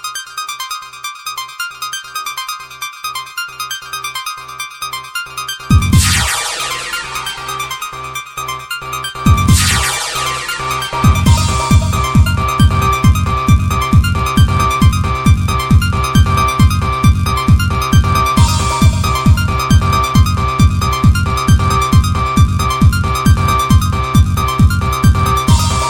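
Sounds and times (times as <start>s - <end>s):
club mix dance music: 5.7s - 8.2s, 9.1s - 25.8s.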